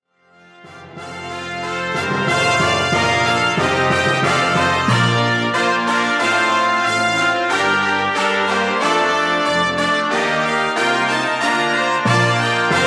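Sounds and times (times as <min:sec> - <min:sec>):
brass instruments: 0:00.2 - 0:12.8.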